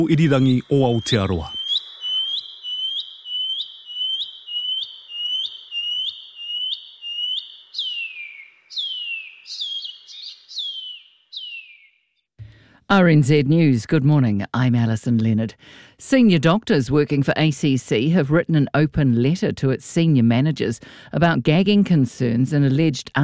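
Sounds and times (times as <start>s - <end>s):
speech: 0.0s - 1.6s, 12.9s - 23.2s
shining cuckoo whistling calls: 0.0s - 12.0s.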